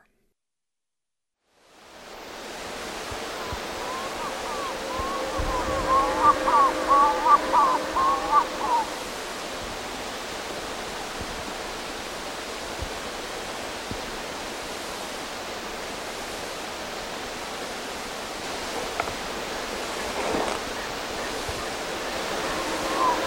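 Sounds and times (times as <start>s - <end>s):
South American snipe giving pulsed notes in the Eastern Lowlands: 3.1s - 10.2s, 18.5s - 23.2s.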